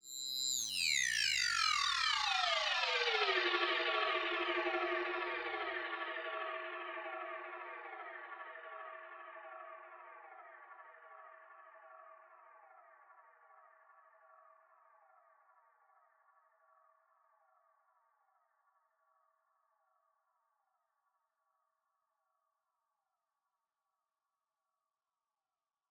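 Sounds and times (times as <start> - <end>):
synth effects: 0.1 - 8.2.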